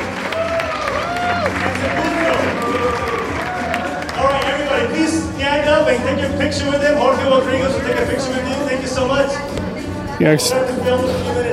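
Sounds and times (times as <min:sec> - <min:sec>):
audience applause: 0:00.0 - 0:04.9
speech: 0:05.9 - 0:09.6, 0:10.2 - 0:11.5.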